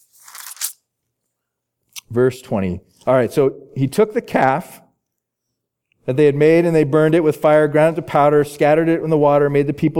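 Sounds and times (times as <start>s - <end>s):
book page turning: 0.0s - 0.8s
speech: 2.1s - 4.8s, 6.1s - 9.9s.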